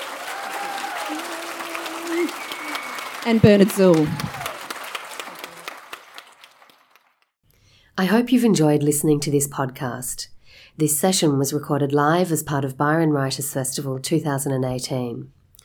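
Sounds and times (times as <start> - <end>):
audience applause: 0.0 - 7.2
speech: 3.2 - 4.4, 8.0 - 15.4.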